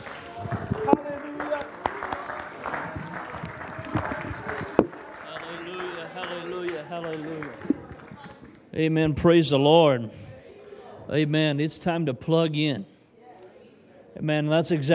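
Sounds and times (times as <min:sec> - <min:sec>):
voices calling out and cheering: 0:00.0 - 0:08.4
audience clapping hands in praise: 0:00.0 - 0:08.7
speech: 0:08.8 - 0:10.3, 0:11.1 - 0:12.9, 0:14.2 - 0:14.9.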